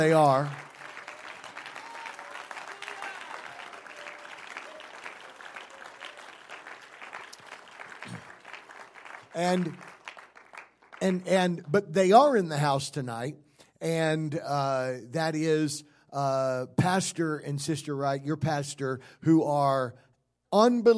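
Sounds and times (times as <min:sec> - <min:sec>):
speech: 0:00.0 - 0:00.6, 0:09.4 - 0:09.9, 0:11.0 - 0:20.9
large audience applauding: 0:00.0 - 0:11.2
cheering or shout: 0:00.7 - 0:06.4.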